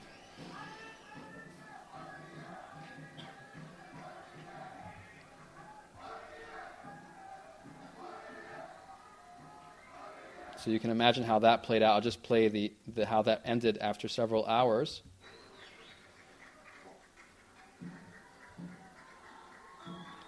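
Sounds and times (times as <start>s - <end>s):
large crowd of protesters roaring and chanting: 0.0s - 10.7s, 17.8s - 20.2s
protesters shouting: 0.0s - 10.7s
speech: 10.6s - 15.1s.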